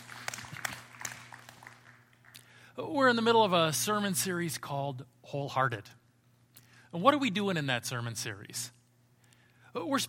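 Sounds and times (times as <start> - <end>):
faint scattered applause from a distant audience: 0.0 - 2.3
low steady hum: 0.0 - 10.0
speech: 2.8 - 6.0, 6.9 - 8.8, 9.8 - 10.0.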